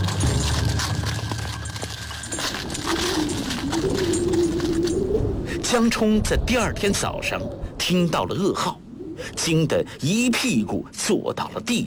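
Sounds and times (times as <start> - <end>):
horses' hooves and carriage wheels of a riding party leaving an imperial park: 0.0 - 5.8
speech: 5.7 - 8.8, 9.4 - 11.8.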